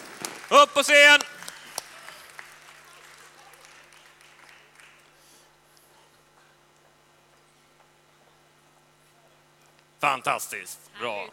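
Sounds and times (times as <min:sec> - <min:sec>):
applause: 0:00.0 - 0:05.4
speech: 0:00.5 - 0:01.3, 0:10.1 - 0:11.3.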